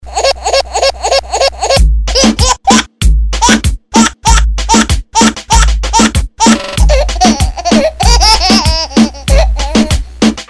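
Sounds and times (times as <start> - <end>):
baby laughing: 0.1 - 10.4.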